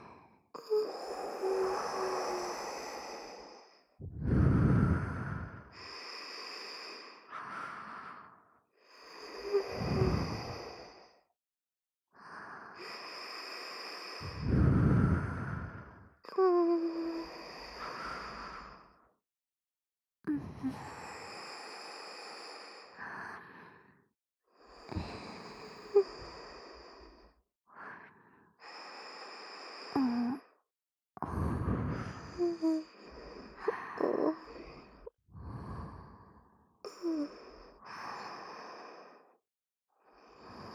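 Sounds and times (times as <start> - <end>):
sleep breathing in both left and right channels: 0.6 - 11.2, 12.6 - 19.0, 24.7 - 27.3, 28.1 - 30.4, 31.2 - 39.4, 40.1 - 40.7.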